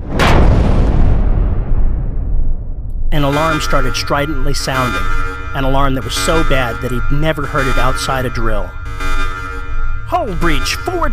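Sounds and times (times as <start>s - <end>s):
depth charges exploding: 0.0s - 6.7s
speech: 3.2s - 9.2s, 10.2s - 11.1s.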